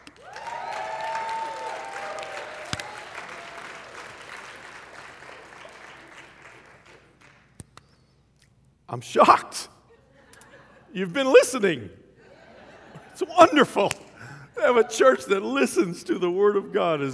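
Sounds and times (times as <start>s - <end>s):
high whoops: 0.0s - 4.2s
audience applause and cheering: 0.0s - 7.5s
speech: 8.9s - 9.7s, 10.9s - 12.0s, 13.2s - 14.0s, 14.6s - 17.1s
laughter: 9.9s - 11.2s, 12.2s - 15.0s.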